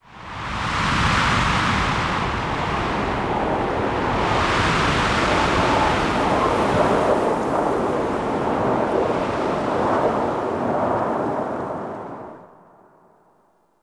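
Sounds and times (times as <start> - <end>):
exterior wind gust: 0.0 - 12.6.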